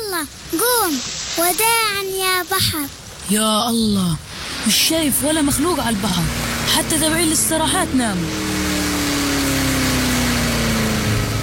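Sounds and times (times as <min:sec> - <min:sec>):
speech: 0:00.2 - 0:08.6
car engine running beside the sea at night: 0:04.7 - 0:11.4.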